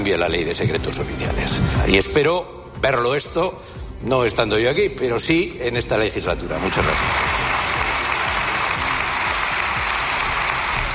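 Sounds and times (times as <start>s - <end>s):
speech: 0.0s - 7.4s
applause from parliamentary groups: 6.6s - 10.9s.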